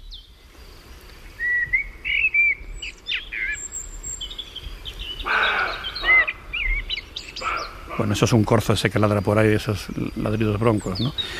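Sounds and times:
Common blackbird singing: 1.4s - 7.8s
speech: 8.0s - 11.3s.

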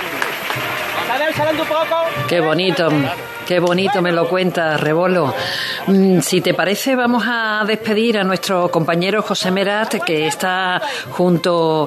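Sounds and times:
street crowd applause in the barrio León: 0.0s - 6.0s, 9.1s - 11.8s
speech: 1.1s - 11.8s.

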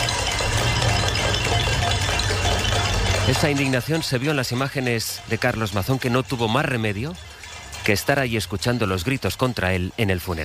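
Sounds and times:
many metal pots and pans struck at a pot-banging protest: 0.0s - 6.5s
speech: 3.3s - 10.4s.

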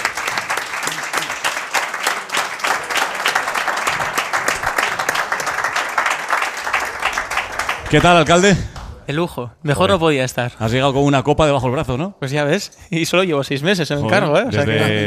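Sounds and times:
audience applause: 0.0s - 8.8s
speech: 7.9s - 15.0s.

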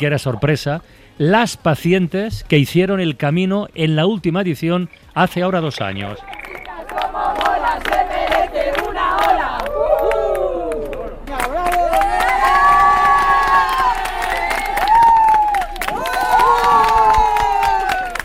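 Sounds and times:
speech: 0.0s - 6.6s
clapping: 6.2s - 18.2s
crowd cheering and shouting farewell: 8.8s - 18.2s.

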